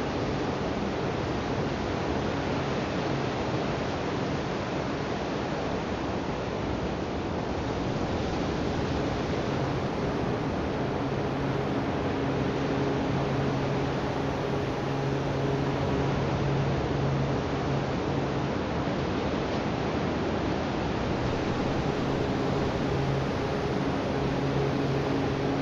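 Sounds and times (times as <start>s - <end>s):
beach ambience at Linda Mar Beach: 0.2s - 25.5s.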